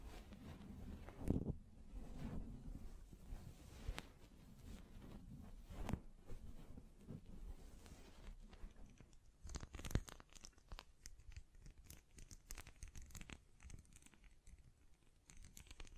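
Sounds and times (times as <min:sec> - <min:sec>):
hands tapping, scratching and brushing against a microphone: 0:00.0 - 0:10.6
crinkly clicks: 0:08.4 - 0:15.9.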